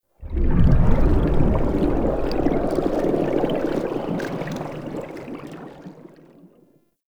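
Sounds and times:
bubble sounds: 0.2 - 5.8.

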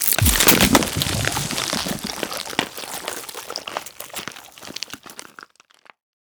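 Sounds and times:
poison injection sound effect: 0.0 - 2.7.

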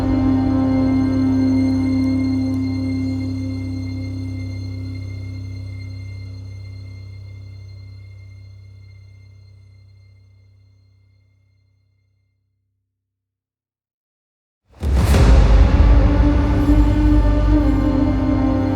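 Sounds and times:
reveal stinger: 0.0 - 7.6, 14.8 - 18.7.

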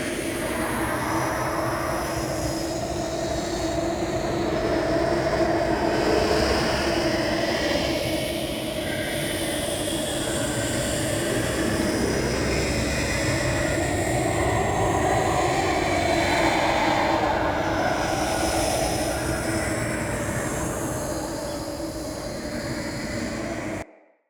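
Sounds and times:
root cave ambience: 0.2 - 23.9.

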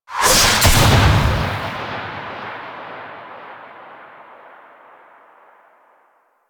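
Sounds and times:
comic whip: 0.1 - 3.3.

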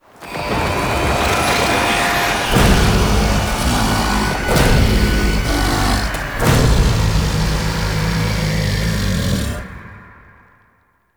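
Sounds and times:
mirror defense alarm waves: 0.0 - 9.8.

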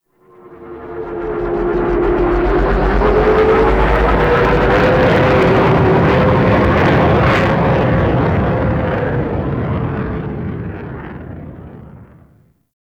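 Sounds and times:
dropships on a ship platform: 0.2 - 9.6.

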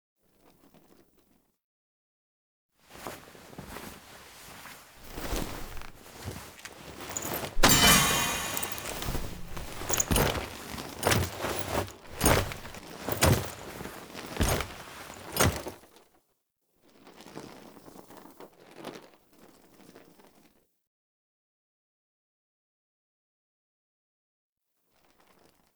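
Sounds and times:
person standing up from throne foley: 5.0 - 15.7.

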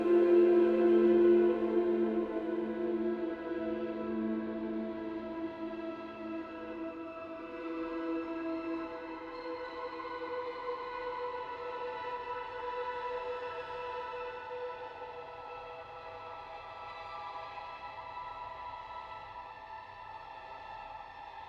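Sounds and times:
ambient siren strings: 0.0 - 16.0.

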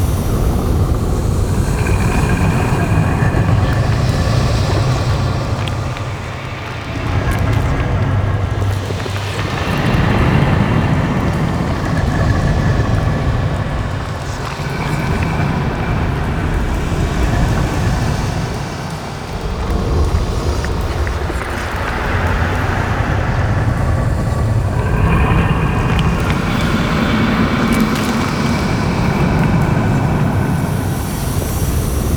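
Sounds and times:
moon interior ambience: 0.0 - 32.1.

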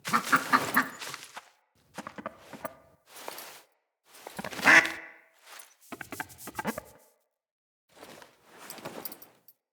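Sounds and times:
pet duck quacking: 0.1 - 1.0, 4.6 - 5.2.

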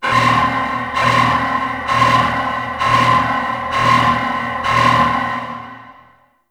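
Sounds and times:
alarm: 0.0 - 6.4.

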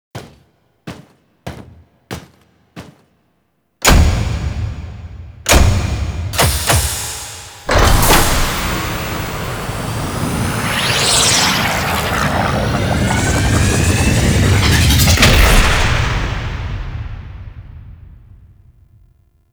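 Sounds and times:
cinematic outro music: 3.9 - 18.0.

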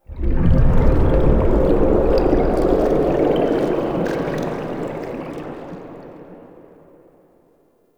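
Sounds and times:
bubbles outro stinger: 0.1 - 6.1.

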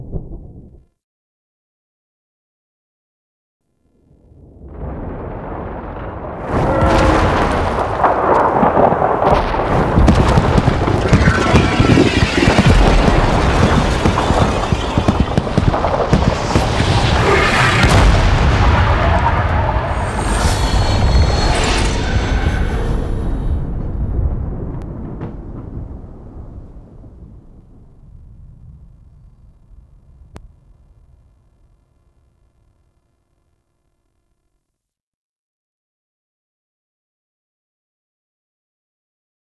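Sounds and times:
debris landing: 4.4 - 31.2.

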